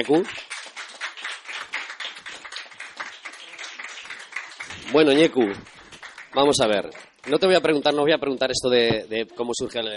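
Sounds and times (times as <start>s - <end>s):
speech: 0.0s - 0.5s, 4.9s - 5.7s, 6.3s - 9.9s
audience applause: 0.0s - 7.7s.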